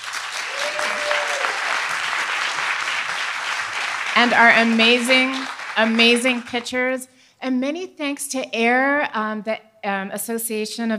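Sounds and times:
applause: 0:00.0 - 0:06.9
speech: 0:04.2 - 0:10.9.

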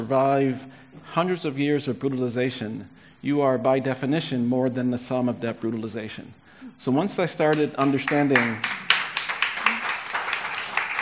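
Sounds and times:
speech: 0:00.0 - 0:08.8
audience clapping at a talk: 0:07.5 - 0:11.0.

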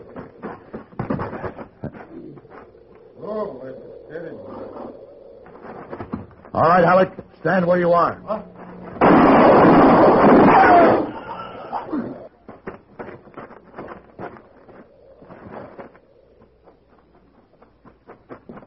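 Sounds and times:
speech: 0:06.6 - 0:08.5
gunshot: 0:09.0 - 0:11.2.

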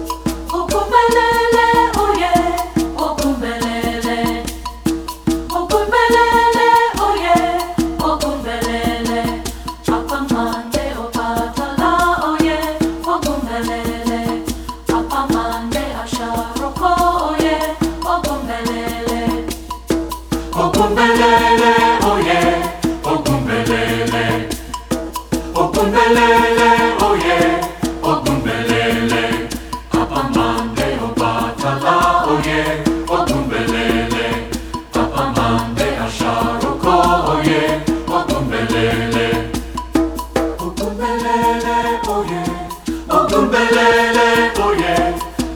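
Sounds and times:
SATB four-part choir singing: 0:00.1 - 0:45.5.

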